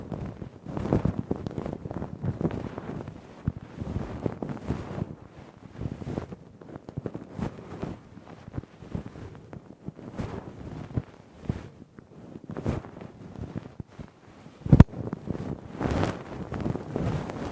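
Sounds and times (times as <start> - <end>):
ear cleaning with a Q-tip and ear pick: 0.0 - 17.5.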